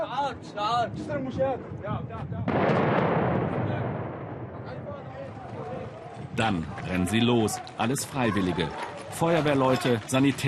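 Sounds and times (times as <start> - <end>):
speech: 0.2 - 4.0, 6.4 - 10.4
barrel bomb explosion: 2.4 - 4.9.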